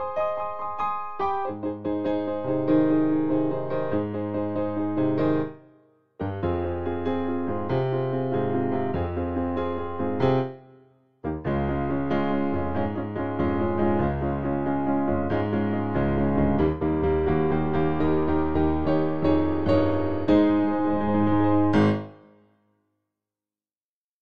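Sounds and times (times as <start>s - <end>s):
piano accompaniment: 0.0s - 22.4s.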